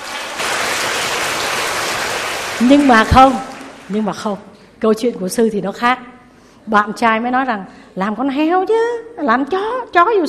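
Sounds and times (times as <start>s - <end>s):
round of applause: 0.0s - 4.2s
speech: 2.6s - 10.2s.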